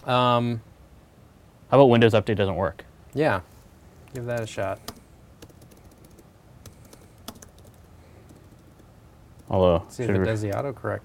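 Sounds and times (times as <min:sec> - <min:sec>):
speech: 0:00.0 - 0:00.7, 0:01.7 - 0:03.5, 0:04.1 - 0:05.0, 0:09.5 - 0:11.0
soft typing on a computer keyboard: 0:04.2 - 0:09.6.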